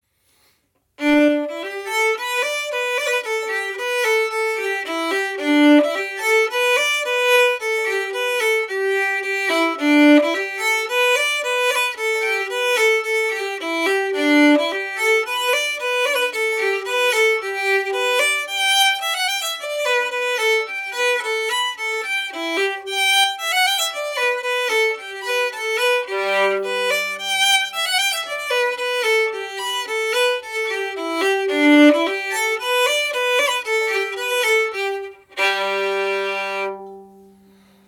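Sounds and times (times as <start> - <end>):
fiddle playing polka: 1.0 - 37.8.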